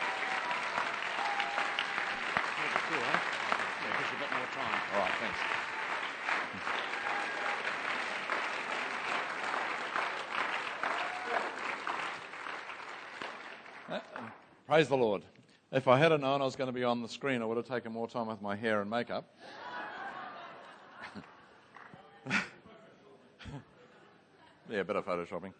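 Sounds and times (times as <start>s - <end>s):
audience applause: 0.0s - 14.4s
speech: 14.7s - 19.6s, 24.8s - 25.5s
laughter: 19.4s - 21.5s.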